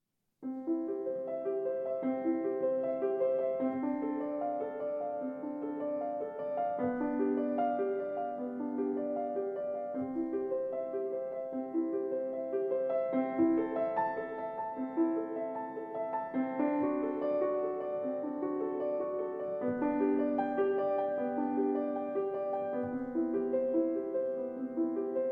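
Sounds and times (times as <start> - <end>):
classical prelude: 0.4 - 25.2.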